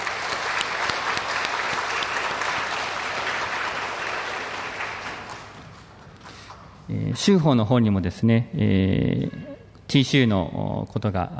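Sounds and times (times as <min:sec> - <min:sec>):
welcoming audience applause: 0:00.0 - 0:06.6
speech: 0:06.9 - 0:11.3.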